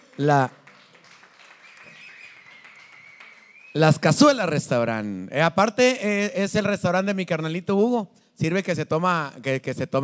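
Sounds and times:
audience applause: 0:00.0 - 0:03.8
speech: 0:00.2 - 0:00.6, 0:03.7 - 0:10.0.

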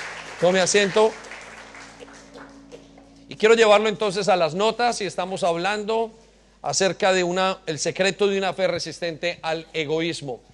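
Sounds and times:
audience applause: 0:00.0 - 0:02.9
low electrical hum: 0:00.0 - 0:10.5
speech: 0:00.4 - 0:01.2, 0:03.3 - 0:10.5.

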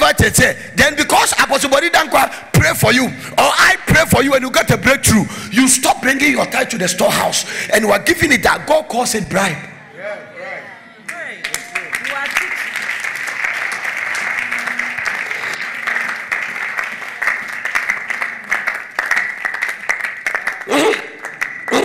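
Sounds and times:
speech: 0:00.2 - 0:10.2
audience clapping: 0:11.1 - 0:21.8.

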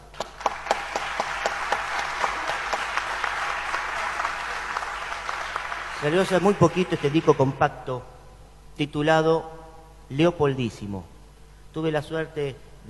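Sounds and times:
audience applause in the room: 0:00.1 - 0:07.5
speech: 0:06.0 - 0:08.1, 0:08.8 - 0:11.1, 0:11.7 - 0:12.8.

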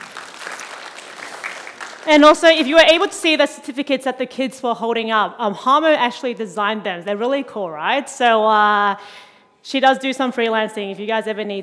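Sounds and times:
audience applause: 0:00.0 - 0:02.1
speech: 0:02.0 - 0:11.6.

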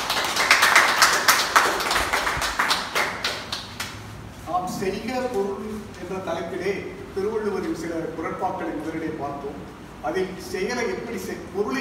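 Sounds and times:
audience applause: 0:00.0 - 0:03.6
speech: 0:04.8 - 0:11.7.

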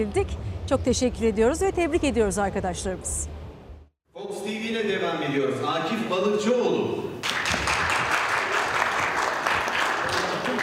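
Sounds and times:
speech: 0:00.0 - 0:03.4, 0:04.2 - 0:07.1
crowd applauding: 0:07.2 - 0:10.6.

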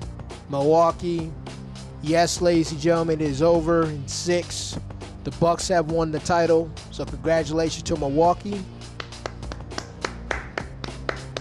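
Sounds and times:
speech: 0:00.5 - 0:01.4, 0:02.0 - 0:08.8
person clapping: 0:08.8 - 0:11.3.

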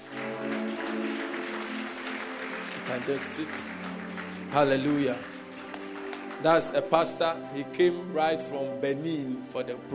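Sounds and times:
audience applause: 0:00.0 - 0:06.9
speech: 0:02.9 - 0:03.9, 0:04.5 - 0:05.3, 0:06.4 - 0:09.9.

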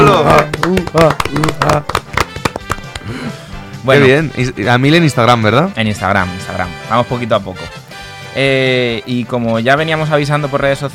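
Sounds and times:
applause: 0:00.0 - 0:03.1
speech: 0:00.2 - 0:02.0, 0:03.1 - 0:07.8, 0:08.4 - 0:10.9.

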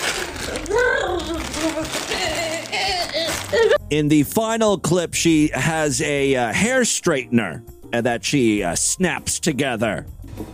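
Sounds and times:
paper being crumpled up: 0:00.0 - 0:03.8
speech: 0:03.5 - 0:10.5.

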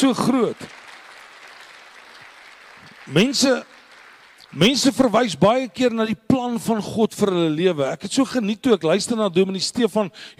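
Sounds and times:
speech: 0:00.0 - 0:00.8, 0:03.1 - 0:03.8, 0:04.5 - 0:10.3
audience clapping hands: 0:00.0 - 0:05.5.

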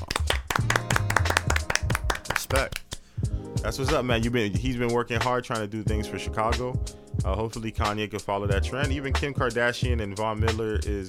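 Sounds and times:
crowd round of applause: 0:00.0 - 0:02.9
speech: 0:03.6 - 0:11.0.

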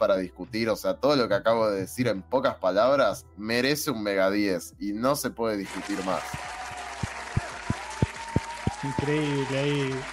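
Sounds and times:
speech: 0:00.0 - 0:06.6, 0:08.8 - 0:10.1
hands clapping against the microphone: 0:05.6 - 0:10.1.

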